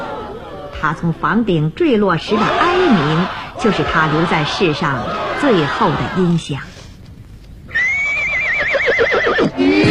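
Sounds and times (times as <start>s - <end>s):
speech: 0.8s - 6.7s
horse whinnying as its rider sets off: 7.7s - 9.8s.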